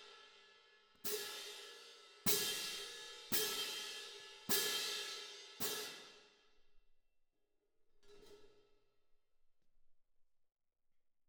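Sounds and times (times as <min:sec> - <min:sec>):
cymbal: 0:00.0 - 0:06.4.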